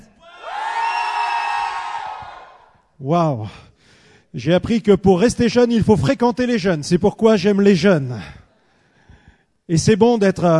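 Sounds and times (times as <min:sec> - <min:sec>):
young crowd cheering: 0:00.2 - 0:02.7
speech: 0:03.0 - 0:03.7, 0:04.3 - 0:08.4, 0:09.7 - 0:10.5.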